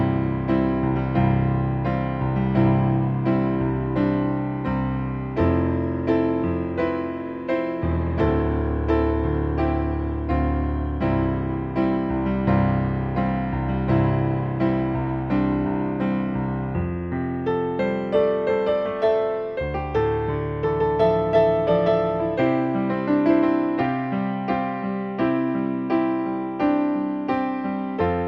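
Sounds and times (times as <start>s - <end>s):
solo piano playing: 0.0s - 28.2s.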